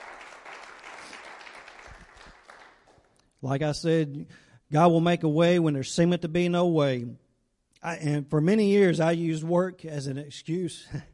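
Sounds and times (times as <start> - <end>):
audience clapping: 0.0 - 3.4
speech: 3.4 - 7.2, 7.8 - 11.1.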